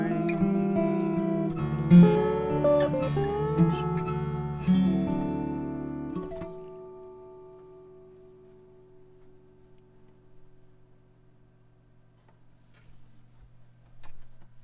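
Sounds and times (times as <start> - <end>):
dobro recorded with a KM84 microphone at the main resonator: 0.0 - 9.8.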